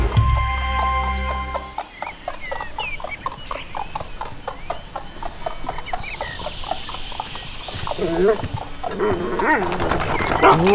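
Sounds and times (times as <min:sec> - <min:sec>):
clip-clop of hooves from a horse-drawn carriage: 0:00.2 - 0:10.7
animal sounds: 0:01.8 - 0:10.7
dog barking: 0:10.4 - 0:10.7.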